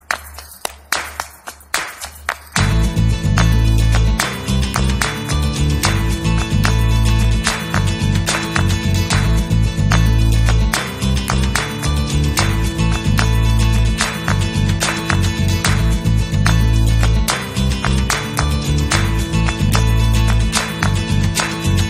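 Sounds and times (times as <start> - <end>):
background music: 0.9 - 21.8.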